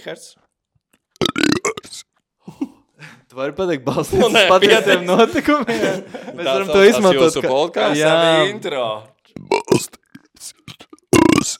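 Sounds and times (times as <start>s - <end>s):
speech: 0.0s - 0.4s, 3.3s - 10.6s
loud croaky burp: 1.2s - 2.1s, 9.3s - 11.5s
laughter: 3.9s - 8.7s.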